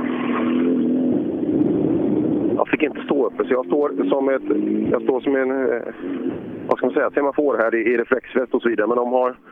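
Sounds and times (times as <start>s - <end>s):
rally car driving past at speed: 0.0s - 6.8s
speech: 2.8s - 9.4s.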